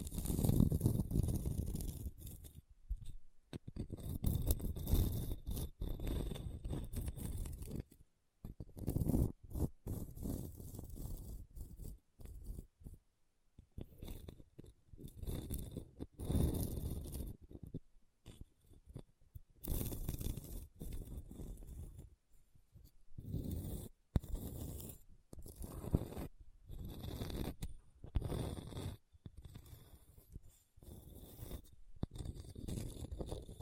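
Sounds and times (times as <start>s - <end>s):
scratching across a hard bumpy surface: 0.0s - 13.0s, 13.8s - 22.2s, 22.8s - 33.5s.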